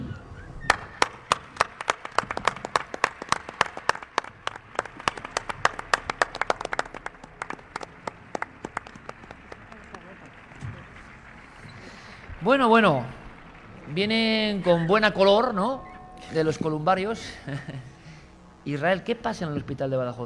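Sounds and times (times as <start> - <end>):
audience applause: 0.7 - 15.7
speech: 12.5 - 13.2, 13.9 - 17.9, 18.6 - 20.2
laughter: 17.2 - 18.2.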